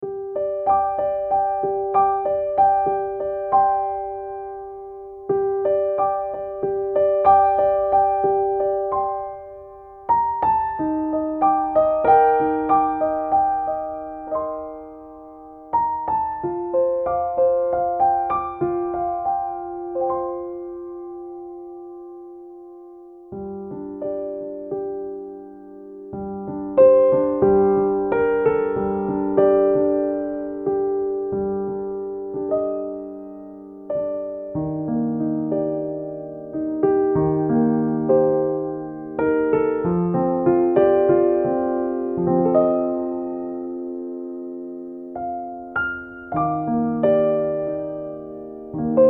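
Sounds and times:
piano: 0.0s - 49.0s.

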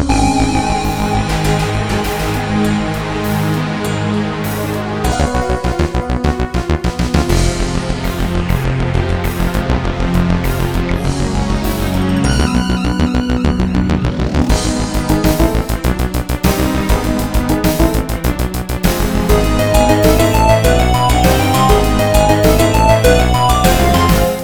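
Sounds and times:
boss fight music: 0.1s - 24.4s.

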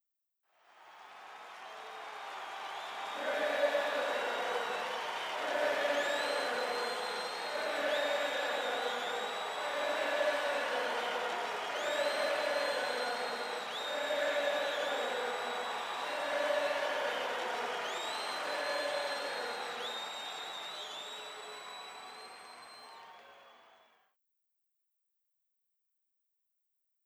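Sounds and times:
crowd chanting: 1.0s - 21.8s.

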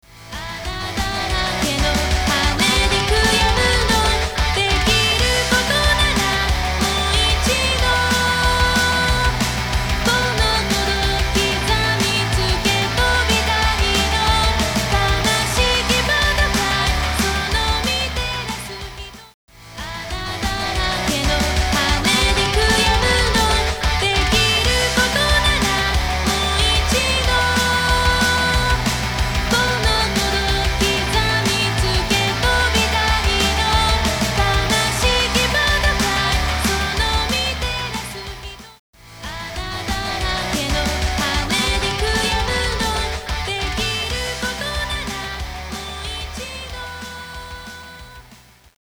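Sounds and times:
karaoke backing music: 0.1s - 48.4s.

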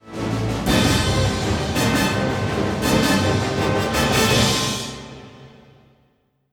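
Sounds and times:
music sting: 0.6s - 5.3s.

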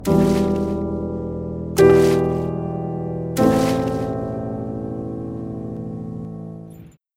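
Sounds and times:
ambient piano music: 0.0s - 7.0s.

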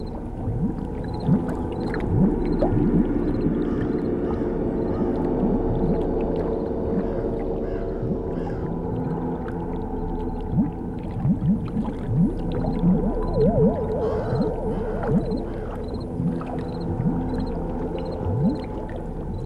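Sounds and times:
alien ambience: 0.0s - 19.4s.

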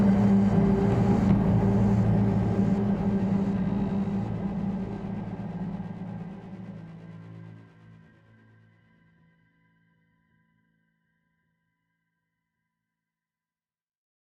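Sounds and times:
tense music loop: 0.0s - 6.6s.

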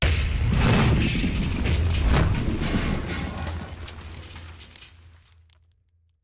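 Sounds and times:
large explosion: 0.0s - 4.7s.

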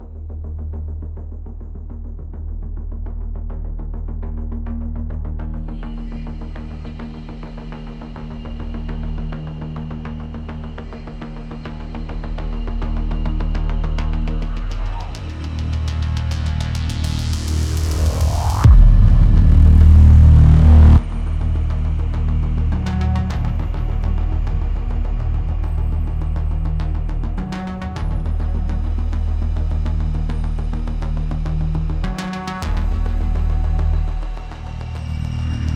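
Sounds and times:
ambient music: 0.0s - 35.7s.

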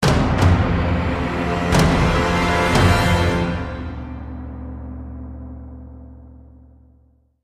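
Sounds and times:
heavy combat music intro: 0.0s - 6.4s.

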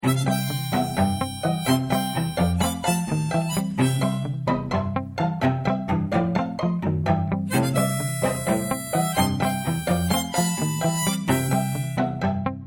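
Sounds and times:
full ensemble playing indoors: 0.1s - 12.5s.

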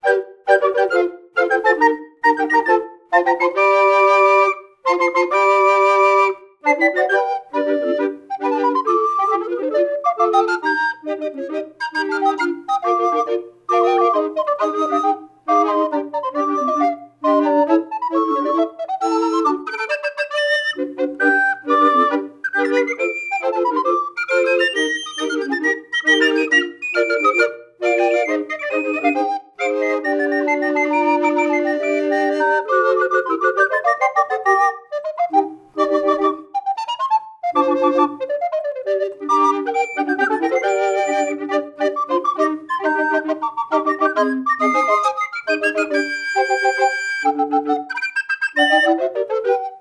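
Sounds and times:
recorder: 0.0s - 49.7s.

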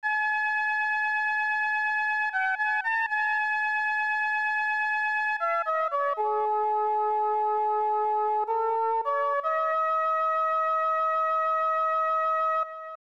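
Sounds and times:
flute melody: 0.0s - 13.0s.

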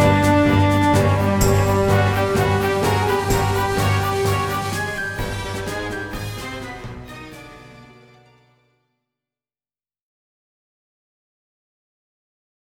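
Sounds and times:
monster beat: 0.0s - 6.8s.

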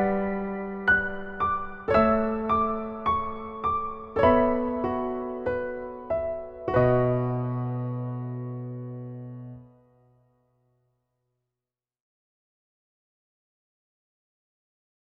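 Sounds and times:
piano version: 0.0s - 10.7s.

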